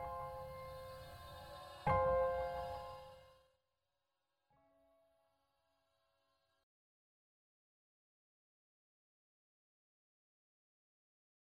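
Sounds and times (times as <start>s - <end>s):
piano music: 0.0s - 3.4s.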